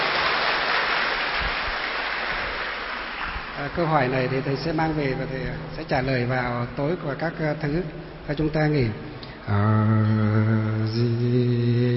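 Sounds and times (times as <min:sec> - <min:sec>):
crowd clapping: 0:00.0 - 0:05.1
speech: 0:03.6 - 0:11.9.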